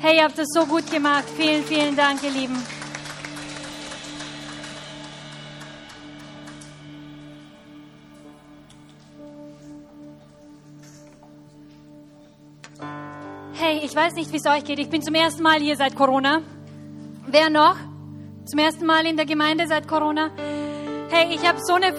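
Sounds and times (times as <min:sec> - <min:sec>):
speech: 0:00.0 - 0:02.8, 0:13.9 - 0:16.6, 0:17.3 - 0:17.9, 0:18.5 - 0:20.5, 0:21.1 - 0:21.9
audience clapping for the band: 0:00.0 - 0:07.5.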